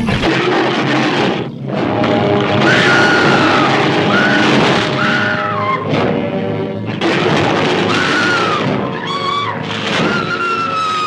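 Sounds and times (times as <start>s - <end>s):
crashing, thunder-like booms: 0.0s - 11.0s
King Kong roar from reversed tiger roar: 0.1s - 10.8s
shrill wavering high cries: 2.6s - 5.9s, 7.9s - 11.0s.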